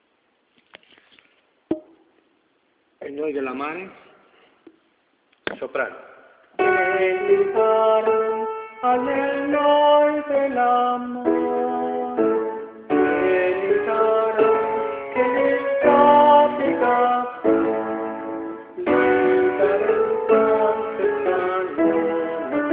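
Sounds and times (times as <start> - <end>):
soprano singing: 6.6 - 22.7.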